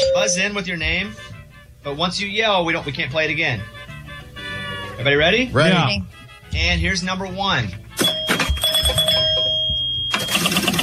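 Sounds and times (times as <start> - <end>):
speech: 0.2 - 3.8, 5.0 - 8.1
pinball machine: 8.0 - 10.8.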